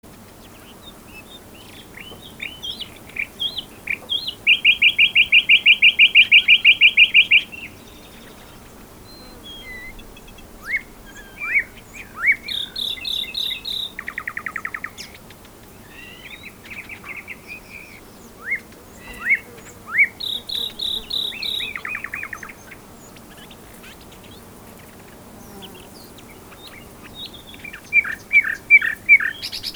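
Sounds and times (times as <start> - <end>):
common nightingale song: 0.1 - 29.7.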